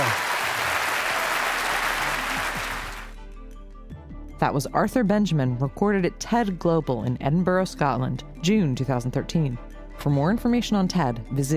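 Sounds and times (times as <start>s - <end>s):
audience applause: 0.0s - 3.1s
speech: 4.4s - 11.5s.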